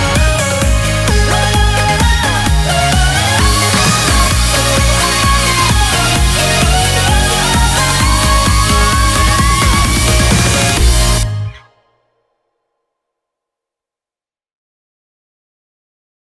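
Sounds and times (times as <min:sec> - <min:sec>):
music: 0:00.0 - 0:12.8.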